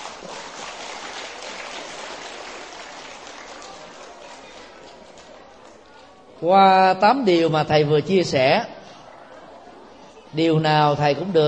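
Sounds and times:
children's applause: 0.0s - 5.9s
speech: 6.4s - 8.8s, 10.3s - 11.4s.

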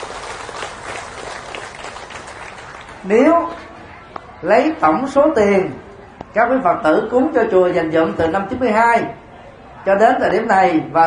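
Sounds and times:
audience applause: 0.0s - 3.3s
speech: 3.0s - 3.6s, 4.4s - 9.2s, 9.8s - 11.0s.

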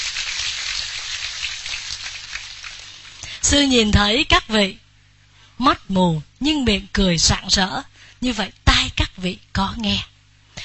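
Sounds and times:
applause: 0.0s - 2.8s
speech: 3.5s - 4.8s, 5.6s - 8.6s, 9.2s - 10.1s.

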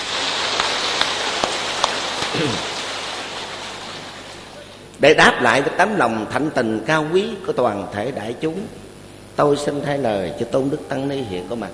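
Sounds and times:
crowd applause: 0.0s - 4.8s
speech: 2.4s - 2.7s, 5.0s - 8.8s, 9.4s - 11.7s.

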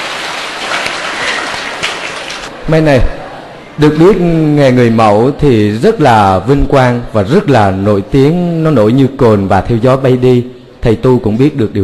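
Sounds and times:
audience applause: 0.0s - 2.5s
speech: 2.7s - 3.2s, 3.8s - 11.8s.

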